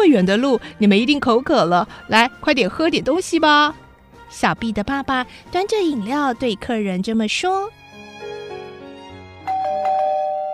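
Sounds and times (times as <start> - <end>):
speech: 0.1 - 8.4
melodic electronic doorbell chime: 9.4 - 10.5.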